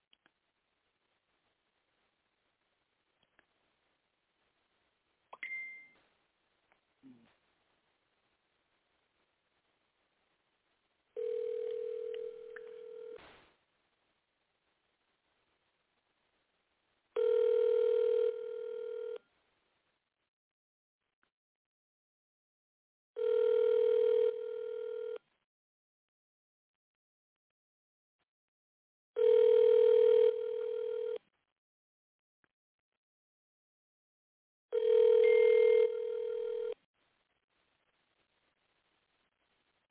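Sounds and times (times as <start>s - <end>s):
phone call ringing tones on the line: 11.2s - 13.2s, 17.2s - 19.2s, 23.2s - 25.2s, 29.2s - 31.2s, 34.7s - 36.8s.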